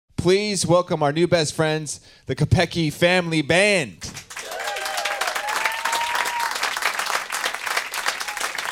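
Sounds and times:
speech: 0.2 - 4.3
audience applause: 4.2 - 8.7.

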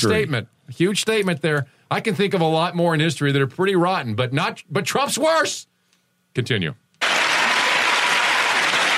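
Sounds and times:
speech: 0.0 - 5.7, 6.3 - 6.8
audience clapping: 7.0 - 8.9.

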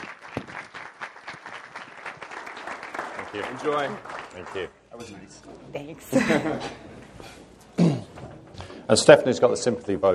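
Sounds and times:
audience applause: 0.0 - 4.7
speech: 3.3 - 7.4, 8.9 - 10.1
laughter: 6.1 - 7.0.

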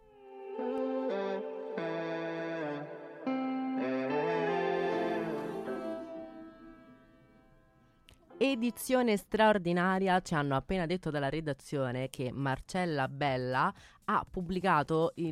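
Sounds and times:
pop song played on air: 0.0 - 6.9
speech: 8.4 - 15.3.

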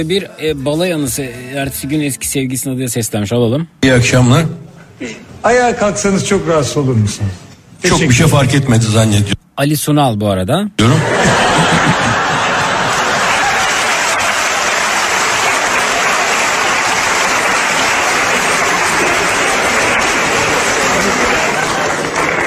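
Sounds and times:
speech: 0.0 - 11.4
faint laughter: 10.8 - 13.4
crowd applause: 11.0 - 22.4.

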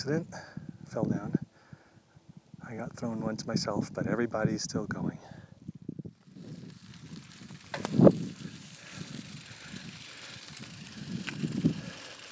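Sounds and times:
speech: 0.0 - 1.4, 2.7 - 5.4
wind noise: 0.0 - 12.2
bicycle tyres crunching and rattling on a dirt track on the La Tierra Trails in Santa Fe: 6.0 - 12.2.

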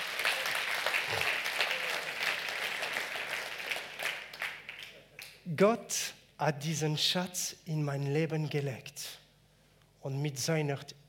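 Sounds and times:
audience applause: 0.0 - 5.0
speech: 5.5 - 9.2, 10.0 - 11.0.

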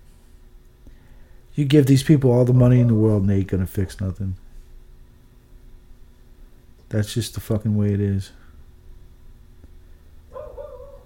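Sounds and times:
speech: 1.6 - 4.4, 6.9 - 8.4
dog Rocky barking: 10.3 - 11.0.

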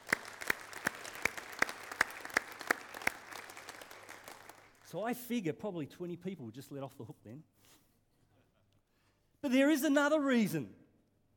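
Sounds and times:
audience clapping: 0.0 - 5.0
speech: 4.9 - 7.8, 9.4 - 10.8.

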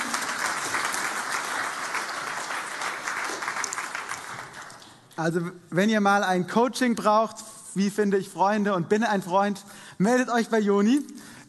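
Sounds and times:
audience applause: 0.0 - 5.1
speech: 5.2 - 11.3.

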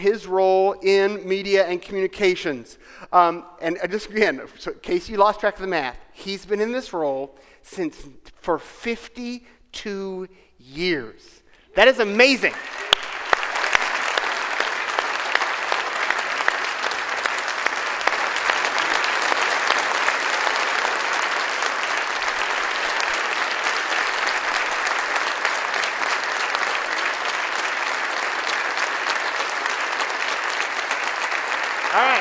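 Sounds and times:
speech: 0.0 - 12.8
audience applause: 12.2 - 32.1.

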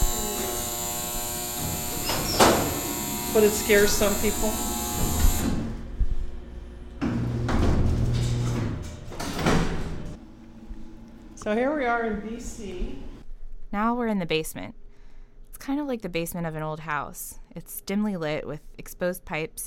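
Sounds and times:
freight elevator running: 0.0 - 10.2
freight elevator gate closing: 1.6 - 4.1, 7.1 - 10.2
speech: 3.4 - 4.7, 11.5 - 13.1, 13.7 - 14.8, 15.7 - 19.6.

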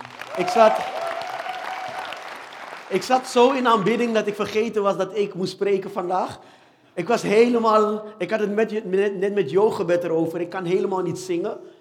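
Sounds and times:
audience applause for the band: 0.0 - 3.0
speech: 0.4 - 1.0, 2.9 - 11.7.

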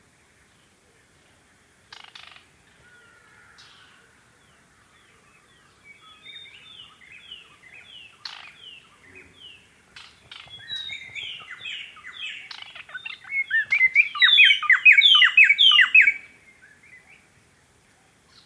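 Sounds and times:
hiss: 0.0 - 18.4
white-browed robin-chat singing: 5.9 - 17.2.

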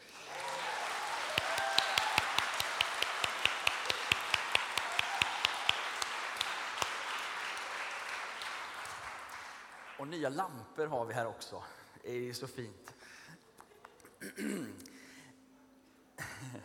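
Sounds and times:
audience applause: 0.0 - 10.1
speech: 10.1 - 13.0, 14.3 - 14.9.

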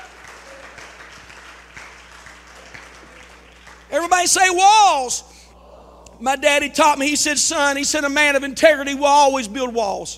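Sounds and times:
audience clapping: 0.0 - 4.6
speech: 3.9 - 5.3, 6.2 - 10.1.

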